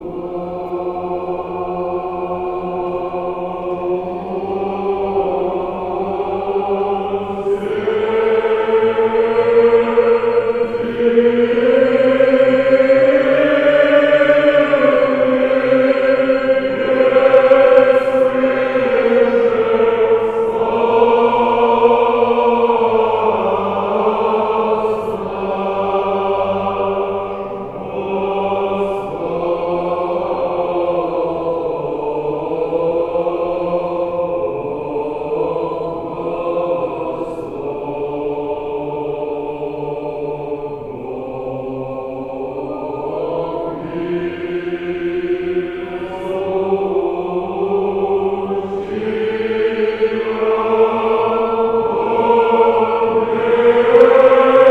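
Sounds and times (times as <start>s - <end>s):
choir singing a Nativity hymn: 0.0s - 54.6s.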